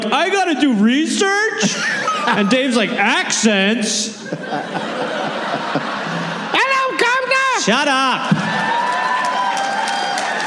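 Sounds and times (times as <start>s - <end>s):
speech: 0.0s - 5.9s, 7.6s - 8.8s
laughter: 1.4s - 7.0s
crowd cheers and voices: 4.4s - 10.4s
audience applause: 8.3s - 10.4s.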